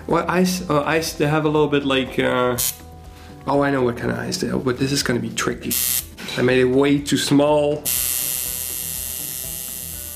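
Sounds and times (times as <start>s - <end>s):
speech: 0.1s - 8.1s
grinding buzz of a buzzsaw-like machine: 7.9s - 10.1s.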